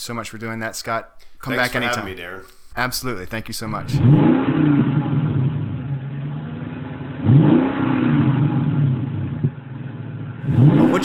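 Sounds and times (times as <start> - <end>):
speech: 0.0 - 4.9
car engine idling with a light rev: 3.9 - 11.0.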